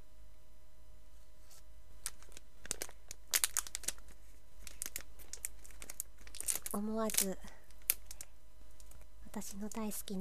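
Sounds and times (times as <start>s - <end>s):
crinkly plastic wrapping of a grape-flavored gummy candy package tearing open: 2.0s - 10.0s
speech: 6.7s - 7.5s, 9.3s - 10.1s.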